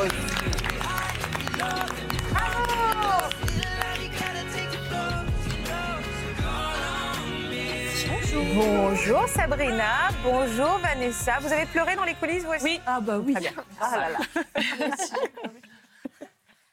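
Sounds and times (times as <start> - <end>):
people cheering: 0.0 - 3.8
studio audience applause: 0.0 - 4.8
music: 0.0 - 14.5
speech: 8.6 - 15.7
laughter: 13.4 - 16.7.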